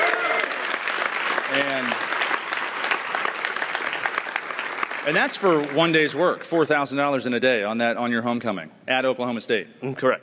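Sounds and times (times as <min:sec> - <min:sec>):
audience applause: 0:00.0 - 0:06.2
speech: 0:01.5 - 0:02.1, 0:05.0 - 0:10.2.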